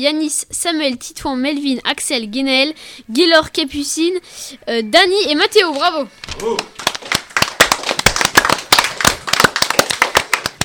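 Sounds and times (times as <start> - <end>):
speech: 0.0 - 7.2
audience applause: 6.5 - 10.6.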